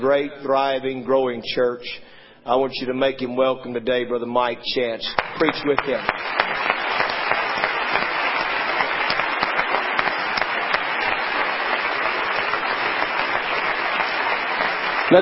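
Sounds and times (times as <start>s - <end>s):
speech: 0.0s - 6.7s
audience clapping hands: 5.1s - 15.2s.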